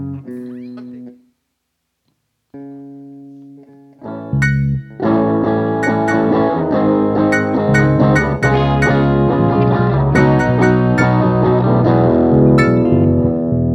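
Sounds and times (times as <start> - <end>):
strings: 4.4 - 5.2, 5.8 - 13.5.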